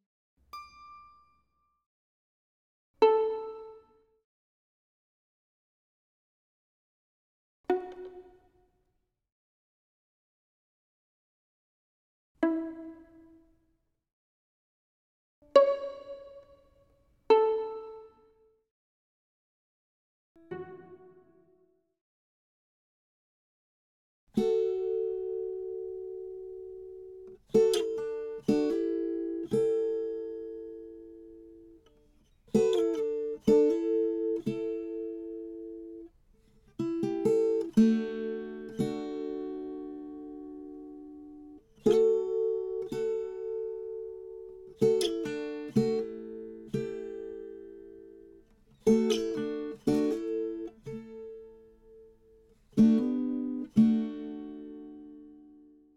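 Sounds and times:
travelling guitar: 3.0 - 4.0, 7.7 - 8.6, 12.4 - 13.6, 15.4 - 18.5, 20.4 - 21.7, 24.3 - 55.9.

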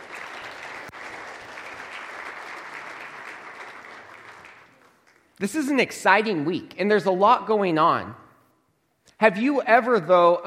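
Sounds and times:
audience applause: 0.0 - 5.4
speech: 5.4 - 8.2, 9.2 - 10.4.

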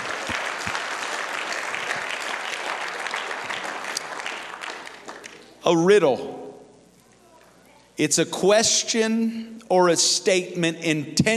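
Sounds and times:
large group clapping hands: 0.0 - 5.6
speech: 5.7 - 6.4, 8.0 - 11.3.

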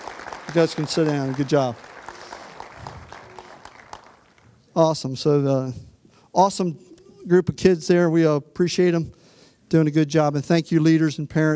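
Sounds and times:
audience clapping: 0.0 - 4.6
speech: 0.5 - 1.9, 4.8 - 11.5.

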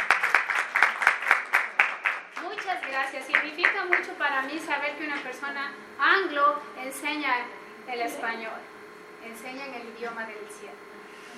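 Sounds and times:
audience applause: 0.0 - 4.1
speech: 3.0 - 10.9.

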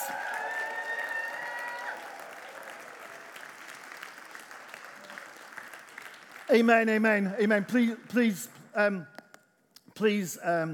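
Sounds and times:
audience cheering: 0.0 - 3.5
audience applause: 0.0 - 6.6
speech: 6.5 - 9.1, 10.0 - 10.7.

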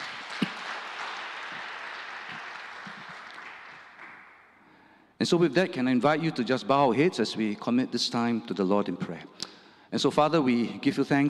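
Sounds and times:
applause welcoming visitors at a gathering: 0.0 - 4.8
speech: 5.2 - 11.2.

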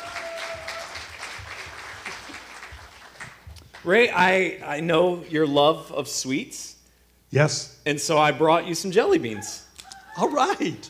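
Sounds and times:
audience applause welcoming a guest onto a stage: 0.0 - 3.8
speech: 3.8 - 9.6, 10.2 - 10.8.

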